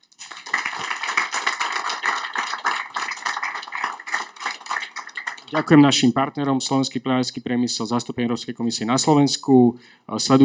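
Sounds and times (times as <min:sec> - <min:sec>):
audience applause: 0:00.1 - 0:05.8
speech: 0:05.5 - 0:10.4.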